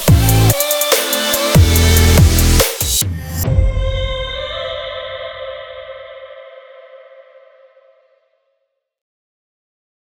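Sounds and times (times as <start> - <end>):
modern future bass music: 0.0 - 4.8.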